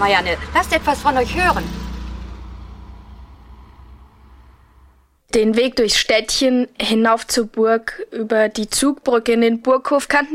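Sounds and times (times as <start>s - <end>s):
speech: 0.0s - 1.8s, 5.3s - 10.3s
taxi driving and stopping: 0.0s - 5.2s.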